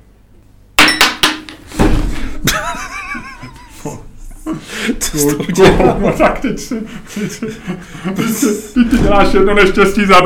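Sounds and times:
coin thrown onto a table: 0:00.8 - 0:01.6
laughter: 0:02.4 - 0:10.0
speech: 0:03.8 - 0:10.2.

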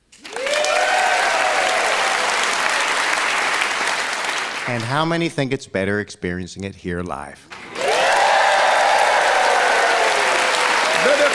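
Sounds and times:
whoops and cheers: 0:00.2 - 0:03.0, 0:07.7 - 0:11.3
live audience applause: 0:00.2 - 0:04.9, 0:07.5 - 0:11.3
speech: 0:04.7 - 0:07.5.

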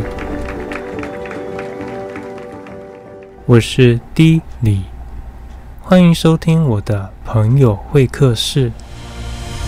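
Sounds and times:
loud applause from a crowd: 0:00.0 - 0:03.4
speech: 0:03.5 - 0:04.9, 0:05.9 - 0:08.8.

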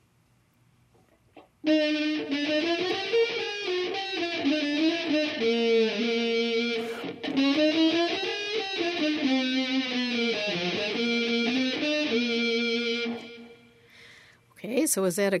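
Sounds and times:
speech: 0:01.6 - 0:02.7, 0:14.9 - 0:15.3
computer distortion effect sounding like a fuzzy electric guitar: 0:01.7 - 0:13.8.

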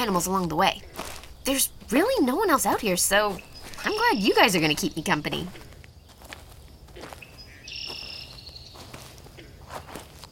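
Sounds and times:
speech: 0:00.0 - 0:05.6
hiker's boots crunching on a trail: 0:00.0 - 0:10.3
high chirping call: 0:01.4 - 0:05.6, 0:07.2 - 0:08.9.

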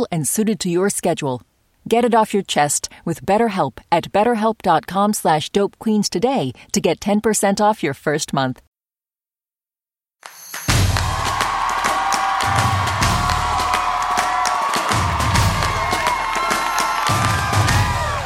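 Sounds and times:
speech: 0:00.0 - 0:08.7
audience cheering and clapping: 0:10.5 - 0:18.2.

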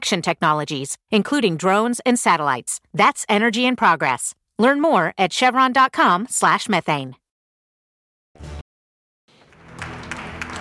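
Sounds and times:
speech: 0:00.0 - 0:07.2
applause at stock exchange opening: 0:09.3 - 0:10.5.

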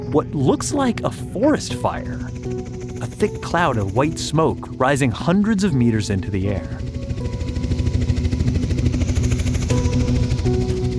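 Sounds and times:
helicopter flying overhead with engine drone and rotor chopping: 0:00.0 - 0:10.9
speech: 0:00.1 - 0:06.9.

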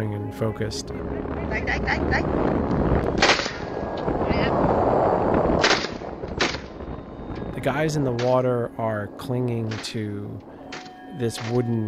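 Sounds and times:
speech: 0:00.0 - 0:03.5, 0:04.1 - 0:05.7, 0:07.6 - 0:10.5, 0:11.2 - 0:11.8
gunshots fired from a ship: 0:03.1 - 0:03.8, 0:05.6 - 0:06.8.

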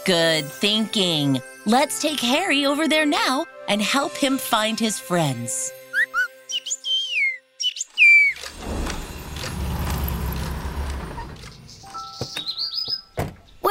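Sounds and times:
speech: 0:00.0 - 0:05.8
birds singing in trees and bushes of a big downtown park: 0:05.9 - 0:08.5, 0:11.2 - 0:13.6
loud broad rumble: 0:08.5 - 0:11.8.

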